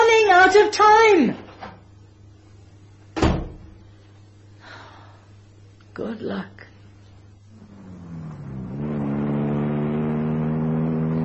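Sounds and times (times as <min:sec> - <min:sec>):
speech: 0:00.6 - 0:01.4, 0:06.0 - 0:06.7
car engine revving and driving off at high speed: 0:07.5 - 0:11.2.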